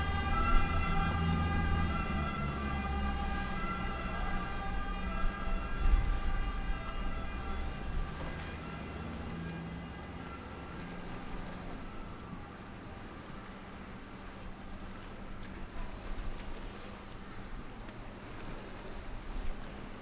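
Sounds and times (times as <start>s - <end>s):
watercraft siren moving right to left in Venice Italy: 0.0s - 17.5s.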